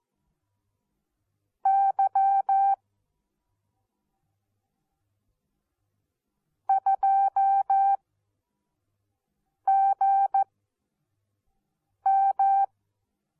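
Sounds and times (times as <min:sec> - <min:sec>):
morse code beeps: 0:01.7 - 0:02.8, 0:06.7 - 0:08.0, 0:12.1 - 0:12.7.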